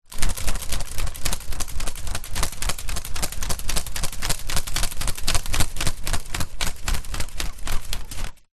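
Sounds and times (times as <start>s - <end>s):
household hand fan fanning: 0.0s - 8.5s.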